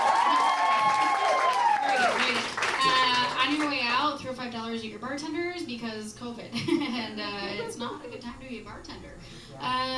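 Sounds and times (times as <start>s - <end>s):
audience cheering: 0.0s - 3.2s
audience clapping: 0.0s - 3.8s
speech: 4.3s - 9.9s.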